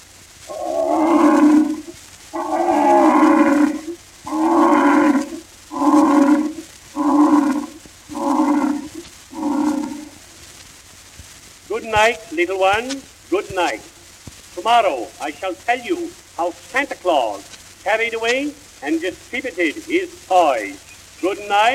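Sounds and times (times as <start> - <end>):
lion roaring: 0.5 - 10.2
speech: 11.9 - 13.9, 14.6 - 21.7.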